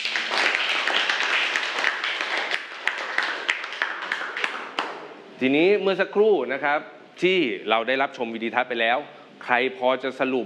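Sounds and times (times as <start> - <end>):
audience applause: 0.0 - 5.0
speech: 5.4 - 10.4.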